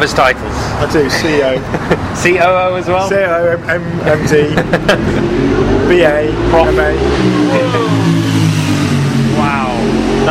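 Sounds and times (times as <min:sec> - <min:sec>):
speech: 0:00.0 - 0:08.2
laughter: 0:01.0 - 0:02.2, 0:04.1 - 0:05.5
superbike motorcycle revving past on a street in downtown LA: 0:04.6 - 0:10.2.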